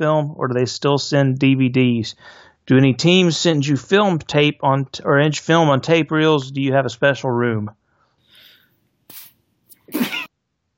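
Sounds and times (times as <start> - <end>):
speech: 0.0 - 7.8
harsh breathy coughing: 9.8 - 10.3.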